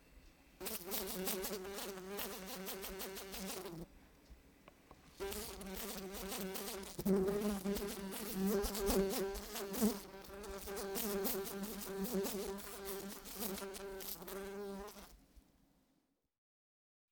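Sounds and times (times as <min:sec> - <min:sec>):
fly wing buzz: 0:00.6 - 0:03.8, 0:05.2 - 0:15.1.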